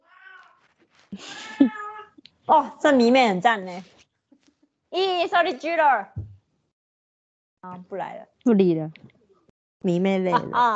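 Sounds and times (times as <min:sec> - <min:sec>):
cat meowing: 0:00.0 - 0:00.7, 0:01.3 - 0:02.1
speech: 0:01.1 - 0:01.8, 0:02.5 - 0:03.9, 0:04.9 - 0:06.2, 0:07.6 - 0:09.1, 0:09.8 - 0:10.7.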